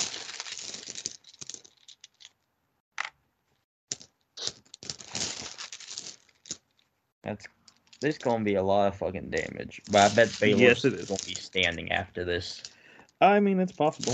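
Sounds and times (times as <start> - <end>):
handful of six-sided dice rolled into a dice tray: 0.0 - 2.3, 4.7 - 6.6, 9.9 - 11.8, 13.9 - 14.1
speech: 7.2 - 14.1.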